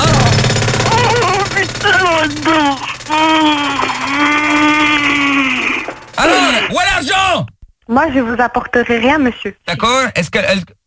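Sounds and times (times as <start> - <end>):
jackhammer pounding: 0.0 - 7.4
person wailing and crying: 0.9 - 6.8
speech: 2.2 - 3.9, 6.2 - 10.8.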